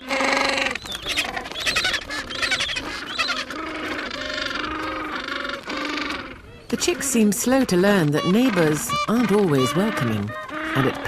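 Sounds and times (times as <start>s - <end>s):
adult penguins squabbling with harsh honks and brays in a colony: 0.0s - 11.0s
speech: 6.8s - 11.0s.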